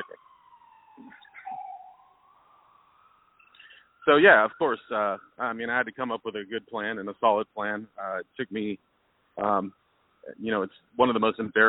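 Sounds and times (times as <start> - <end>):
alarms sounding: 0.0 - 6.1
speech: 4.0 - 11.6.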